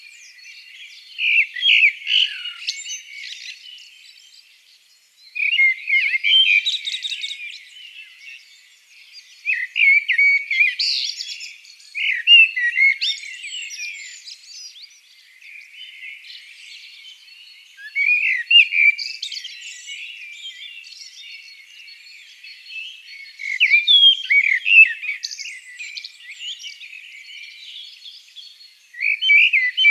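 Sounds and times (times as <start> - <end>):
common blackbird singing: 0.0 - 29.8.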